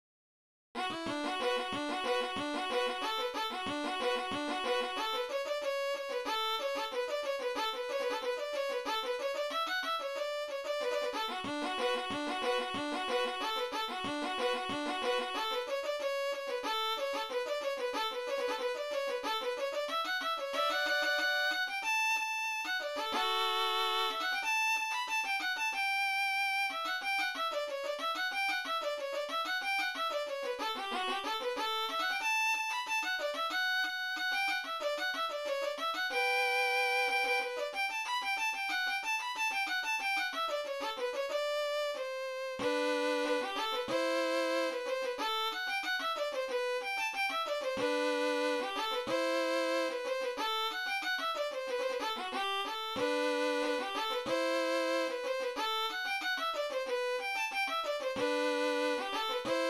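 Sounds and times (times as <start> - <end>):
ragtime melody: 0.8 - 59.6.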